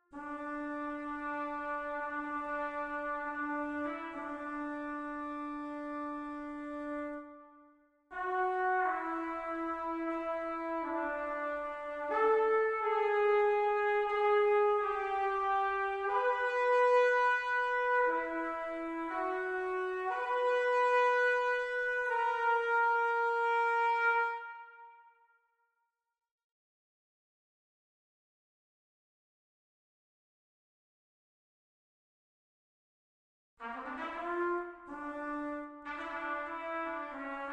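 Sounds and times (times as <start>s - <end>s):
trumpet: 0.0s - 25.4s, 33.6s - 37.5s.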